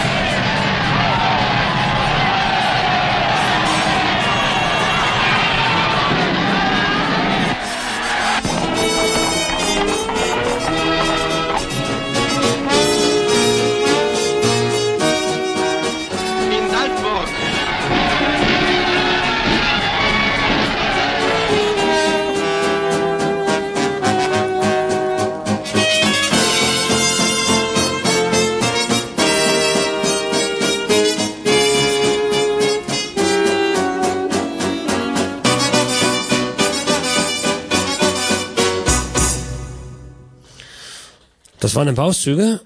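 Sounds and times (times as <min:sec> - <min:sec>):
crowd cheering and jubilation in newsreel: 0:00.0 - 0:39.5
speech: 0:41.8 - 0:42.6.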